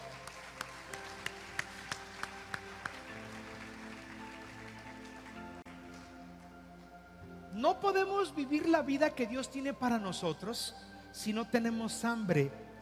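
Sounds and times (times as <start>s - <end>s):
audience applause: 0.0s - 6.0s
speech: 7.6s - 12.8s.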